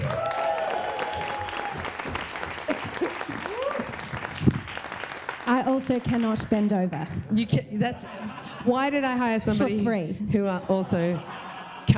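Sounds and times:
audience applause welcoming a performer at a live show: 0.0s - 7.4s
laughter: 1.2s - 11.9s
speech: 5.6s - 11.9s.

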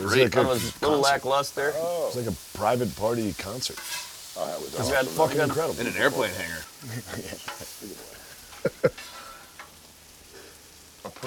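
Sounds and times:
laughter: 0.0s - 0.9s, 4.8s - 9.2s
speech: 0.0s - 8.1s, 8.8s - 9.1s, 11.0s - 11.2s
food frying in a pan on stove burners: 0.0s - 11.2s.

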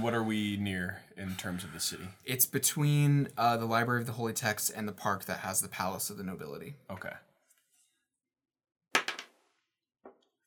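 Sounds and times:
speech: 0.0s - 7.3s
dice clattering across a table: 9.0s - 9.4s.

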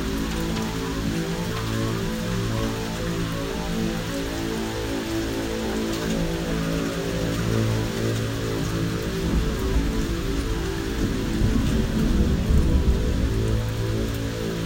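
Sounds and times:
rain in a thunderstorm: 0.0s - 14.6s
rolling thunder rumble: 8.8s - 14.6s.

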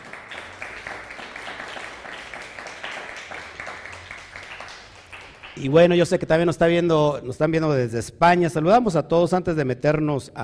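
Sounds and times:
audience applause: 0.0s - 5.8s
speech: 5.6s - 10.4s.

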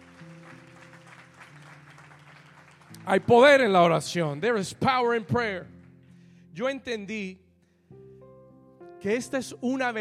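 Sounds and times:
audience applause: 0.0s - 5.2s
speech: 3.1s - 5.8s, 6.6s - 7.4s, 9.0s - 10.0s.

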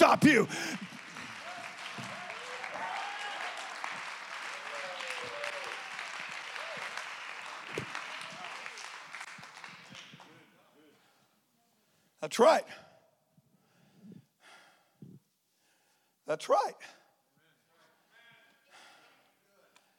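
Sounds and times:
audience clapping hands: 0.0s - 10.6s
speech: 0.1s - 0.9s, 12.2s - 12.9s, 16.3s - 17.0s.

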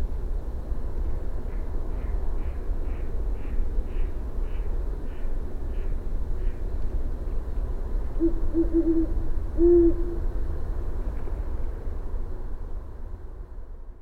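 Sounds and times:
low rumble of engine or traffic noise: 0.0s - 13.9s
great horned owl hooting: 8.2s - 10.2s.

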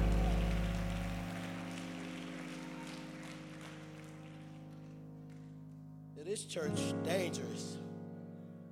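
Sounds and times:
audience clapping hands: 0.0s - 5.8s
speech: 6.2s - 7.9s.

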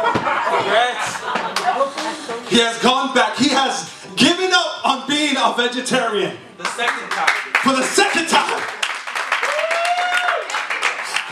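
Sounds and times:
laughter: 0.0s - 2.6s
speech: 2.5s - 4.3s, 5.4s - 8.8s
round of applause: 6.6s - 11.3s.

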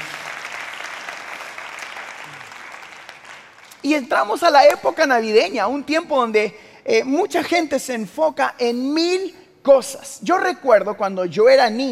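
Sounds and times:
audience applauding: 0.0s - 3.9s
speech: 3.8s - 11.8s.

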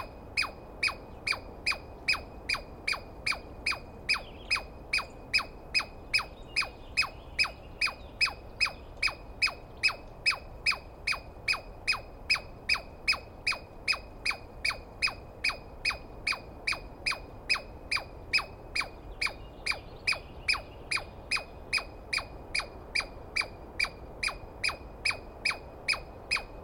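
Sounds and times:
Douglas squirrel alarm chirps: 0.0s - 26.6s.

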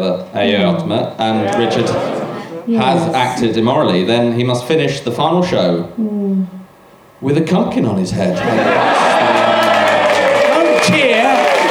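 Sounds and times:
speech: 0.0s - 6.6s, 7.2s - 9.3s
laughter: 1.2s - 3.7s, 8.3s - 11.6s
crowd cheering and whooping: 1.4s - 2.7s, 8.4s - 11.6s.

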